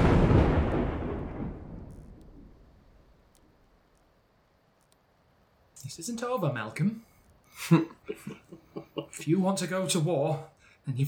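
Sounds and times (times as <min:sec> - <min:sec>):
crack of lightning: 0:00.0 - 0:04.1
speech: 0:05.8 - 0:11.0
laughter: 0:07.6 - 0:09.3.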